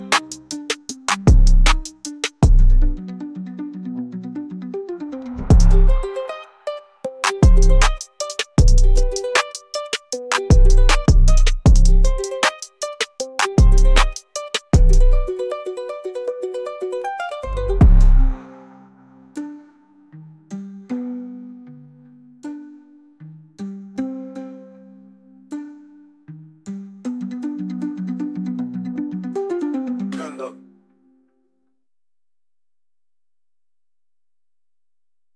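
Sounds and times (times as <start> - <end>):
trap rap beat with guitar: 0.0 - 3.0, 5.4 - 15.4, 17.4 - 18.8.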